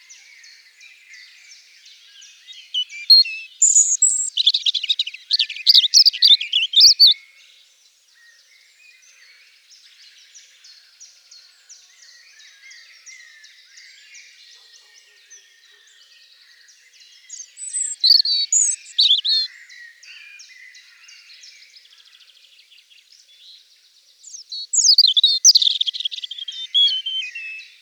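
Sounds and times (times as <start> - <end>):
European robin singing: 1.2 - 7.2, 16.8 - 21.2, 24.2 - 27.7.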